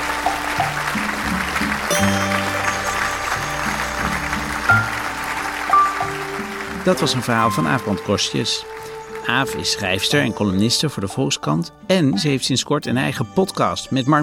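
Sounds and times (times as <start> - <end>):
crowd applause: 0.0 - 9.6
speech: 6.9 - 14.2.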